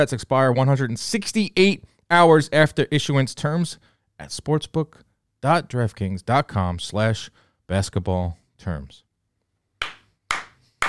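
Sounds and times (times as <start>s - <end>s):
speech: 0.0s - 9.0s
slow hand clapping: 9.8s - 10.8s.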